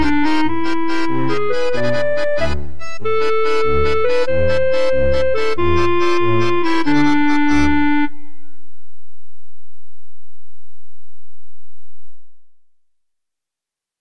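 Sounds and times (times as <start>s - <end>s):
quirky waltz music: 0.0s - 8.2s.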